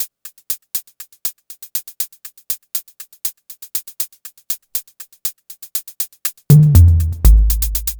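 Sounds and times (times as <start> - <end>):
hi-hat beats: 6.5 - 7.9.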